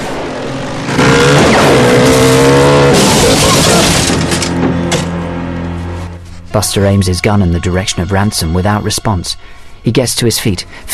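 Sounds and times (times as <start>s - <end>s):
motorbike speeding off: 0.0s - 6.2s
speech: 6.6s - 10.9s.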